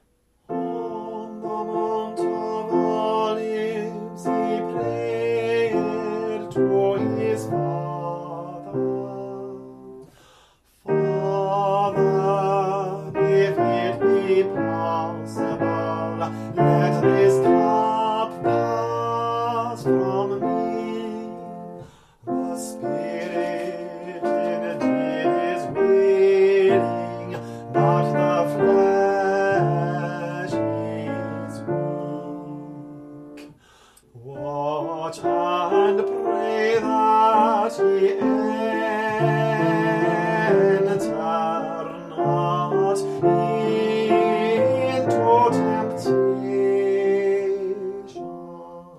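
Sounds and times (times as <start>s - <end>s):
soprano singing: 0.0s - 10.2s, 10.8s - 48.9s.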